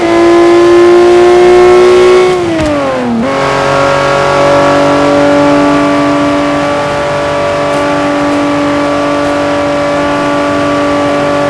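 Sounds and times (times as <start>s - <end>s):
vehicles cruising: 0.0s - 11.4s.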